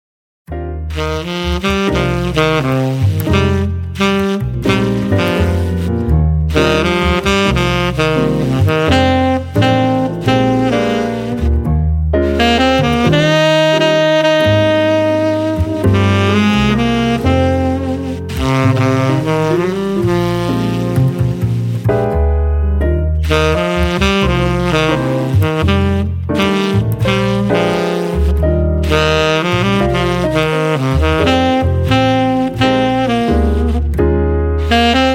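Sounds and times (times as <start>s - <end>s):
jazz music: 0.5s - 35.1s.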